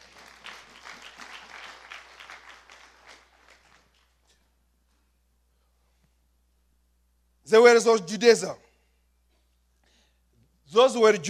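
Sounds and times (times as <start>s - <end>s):
audience applause: 0.0s - 4.0s
speech: 7.5s - 8.7s, 10.8s - 11.2s.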